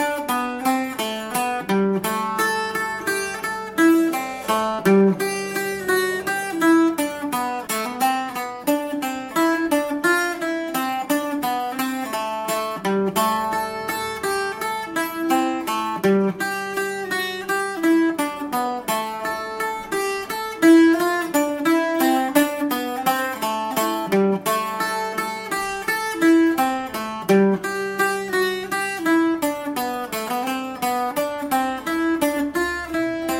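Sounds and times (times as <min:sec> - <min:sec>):
folk tune: 0:00.0 - 0:33.3.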